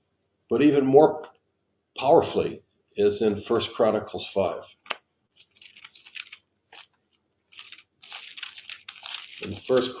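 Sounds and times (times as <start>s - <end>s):
speech: 0.5s - 1.3s, 2.0s - 4.8s, 9.4s - 9.9s
Bible pages turning: 4.7s - 9.9s.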